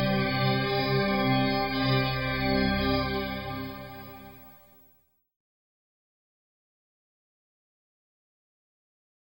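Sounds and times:
synthesized notes: 0:00.0 - 0:04.6.

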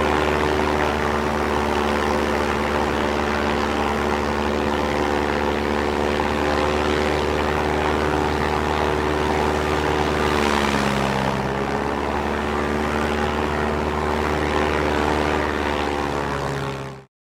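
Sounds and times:
small twin engine prop plane exterior steady with revs: 0:00.0 - 0:17.1.

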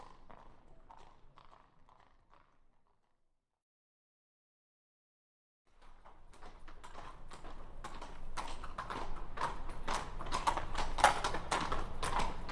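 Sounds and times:
horse hooves clopping at a walk: 0:00.0 - 0:03.0, 0:05.8 - 0:12.5.

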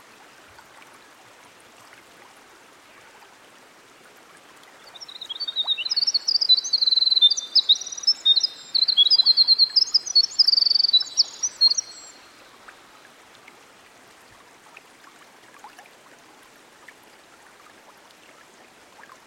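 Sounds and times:
winter wren singing by a stream: 0:04.9 - 0:13.0.

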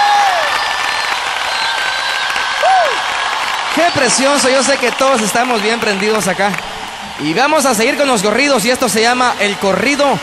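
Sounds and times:
large stadium crowd applauding: 0:00.0 - 0:10.2
sliding whistles: 0:00.4 - 0:02.6
speech: 0:03.8 - 0:10.2.

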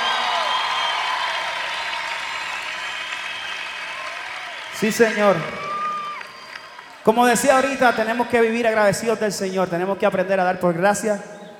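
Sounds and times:
audience applauding: 0:00.0 - 0:08.5
speech: 0:04.8 - 0:05.7, 0:07.1 - 0:11.3.

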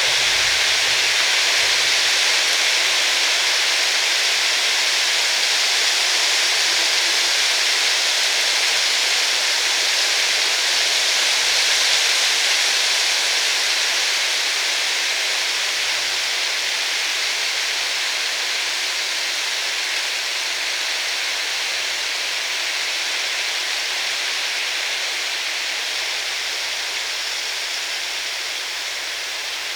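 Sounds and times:
steady rain falling in the forest: 0:00.0 - 0:29.7.

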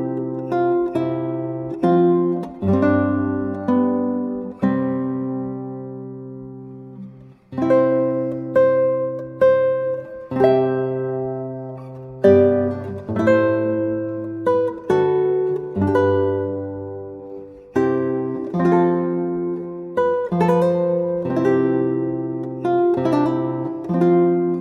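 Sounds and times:
8 string guitar playing: 0:00.0 - 0:24.5.

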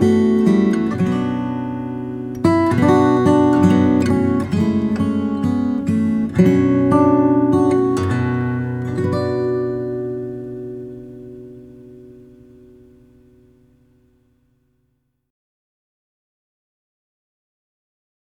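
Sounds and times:
guitar solo: 0:00.0 - 0:13.6.

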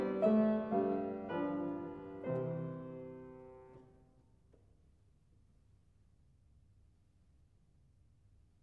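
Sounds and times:
solo fortepiano bagatelles: 0:00.0 - 0:04.1.

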